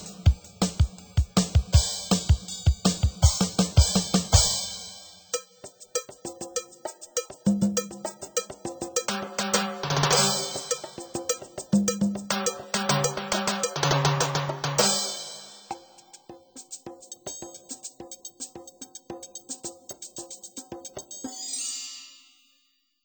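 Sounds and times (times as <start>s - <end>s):
drums on a Yamaha PSR-530 keyboard: 0.0s - 4.8s, 9.1s - 15.2s.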